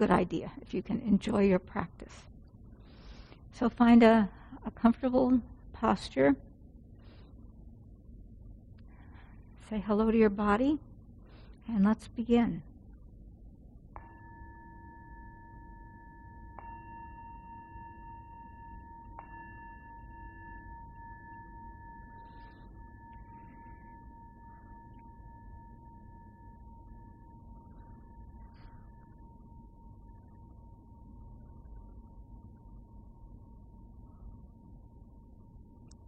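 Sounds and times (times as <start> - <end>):
speech: 0.0 - 2.3, 3.6 - 6.5, 9.7 - 10.9, 11.7 - 12.7
meditation bell ringing: 14.0 - 36.0.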